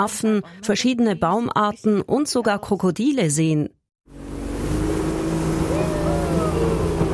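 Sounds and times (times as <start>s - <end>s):
speech: 0.0s - 3.8s
small wooden motorboat accelerating through a turn: 4.1s - 7.1s.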